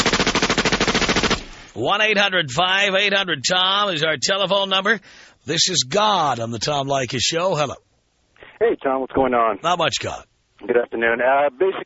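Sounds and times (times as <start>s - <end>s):
machine gun sound effect burst: 0.0s - 1.7s
speech: 1.8s - 7.9s, 8.6s - 11.8s.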